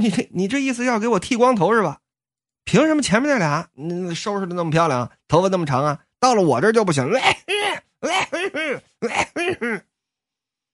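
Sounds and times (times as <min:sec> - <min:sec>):
speech: 0:00.0 - 0:02.0, 0:02.7 - 0:09.9
person imitating deliberate attention-getting coughs: 0:07.1 - 0:09.9.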